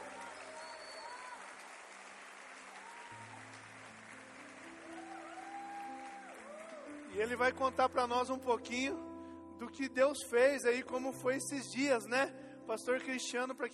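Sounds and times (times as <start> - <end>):
audience applause: 0.0 - 7.3
speech: 7.1 - 13.7.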